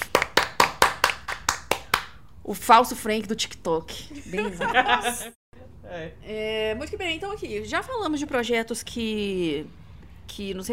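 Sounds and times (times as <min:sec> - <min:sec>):
audience hand claps: 0:00.0 - 0:02.2
speech: 0:02.5 - 0:10.7
laughter: 0:04.2 - 0:05.4.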